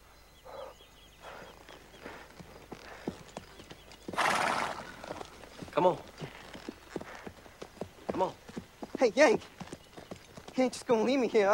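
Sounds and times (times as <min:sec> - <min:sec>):
mare's hooves clip-clopping while ridden: 0:01.5 - 0:11.5
mare snorting: 0:04.1 - 0:05.4
speech: 0:05.8 - 0:06.3, 0:09.0 - 0:09.5, 0:10.6 - 0:11.5.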